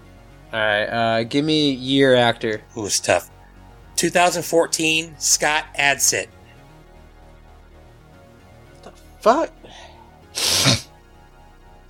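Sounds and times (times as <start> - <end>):
speech: 0.5 - 3.3, 4.0 - 6.4, 9.2 - 9.6
loud sniff: 10.3 - 10.9.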